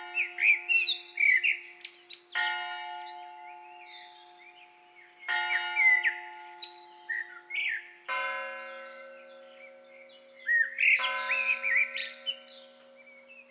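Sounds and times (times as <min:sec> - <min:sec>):
common blackbird Turdus merula fluty whistled song: 0:00.4 - 0:02.3, 0:03.6 - 0:07.9, 0:09.9 - 0:13.4.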